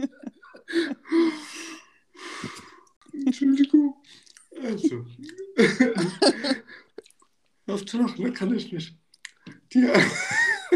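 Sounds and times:
speech: 0:00.0 - 0:00.8, 0:07.9 - 0:09.0, 0:09.7 - 0:10.4
laughter: 0:00.0 - 0:01.5, 0:04.6 - 0:07.0, 0:09.8 - 0:10.7
person taking a deep breath: 0:00.7 - 0:02.8.

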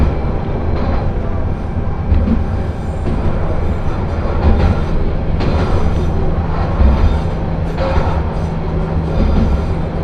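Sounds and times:
constant hum: 0:00.0 - 0:10.0
single-car railbus engine and running rumble on the Akechi Railway: 0:00.0 - 0:10.0.

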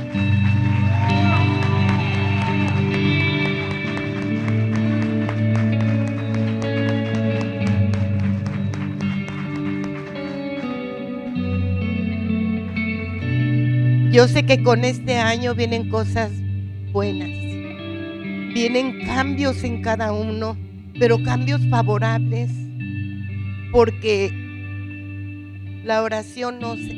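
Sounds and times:
audience applauding: 0:00.0 - 0:13.9
speech: 0:14.2 - 0:17.6, 0:18.6 - 0:22.6, 0:23.7 - 0:24.4, 0:25.8 - 0:26.9.

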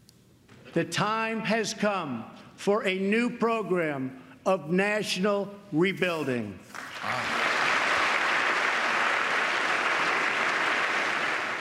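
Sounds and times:
speech: 0:00.7 - 0:07.3
standing applause at the State of the Union: 0:06.7 - 0:11.5.

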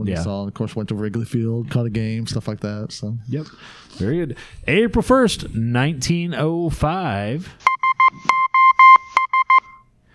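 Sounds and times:
speech: 0:00.0 - 0:08.3
SOS distress signal in Morse code beeps: 0:07.6 - 0:09.9.

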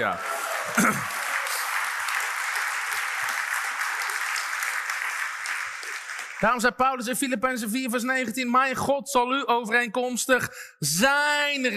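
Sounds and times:
speech: 0:00.0 - 0:01.2, 0:06.4 - 0:11.7
audience applause: 0:00.0 - 0:06.6.

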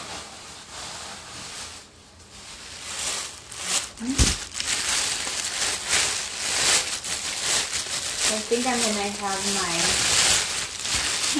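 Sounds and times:
pot of water and potatoes boiling over: 0:02.5 - 0:11.3
speech: 0:04.0 - 0:04.3, 0:08.5 - 0:10.1.

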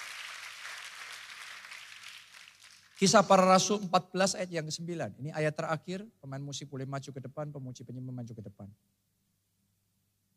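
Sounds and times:
audience applause in a large room: 0:00.0 - 0:03.5
speech: 0:03.0 - 0:09.1.

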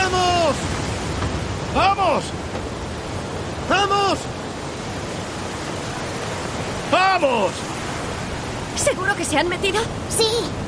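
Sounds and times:
big waves crashing on the shore: 0:00.0 - 0:10.6
speech: 0:07.2 - 0:07.7, 0:08.9 - 0:10.6.

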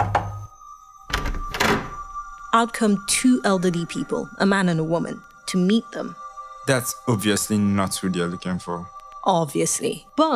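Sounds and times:
knocking on a house door in an upscale residential area of Kololo: 0:00.0 - 0:00.5
speech: 0:02.5 - 0:10.3.

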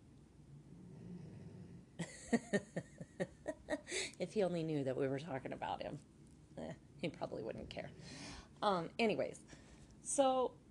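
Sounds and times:
dog snoring on tile floor: 0:00.6 - 0:02.2, 0:07.1 - 0:08.5
speech: 0:02.3 - 0:03.3, 0:04.0 - 0:06.1, 0:07.0 - 0:10.6.

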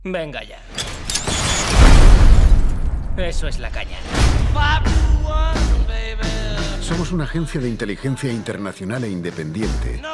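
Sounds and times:
speech: 0:00.0 - 0:00.9, 0:03.2 - 0:10.1
hand grenade explosion: 0:01.2 - 0:03.2.

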